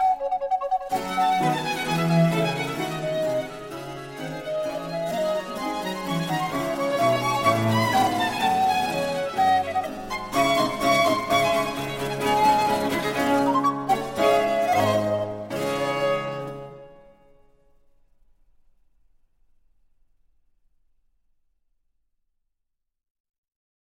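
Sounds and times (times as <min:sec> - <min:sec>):
recorder and two violins playing a sonata: 0:00.8 - 0:16.8.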